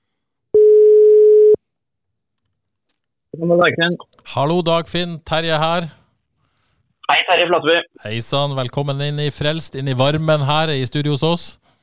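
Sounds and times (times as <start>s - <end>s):
telephone ringing tone on a call being placed: 0.6s - 1.6s
speech: 3.4s - 6.0s, 7.1s - 11.6s.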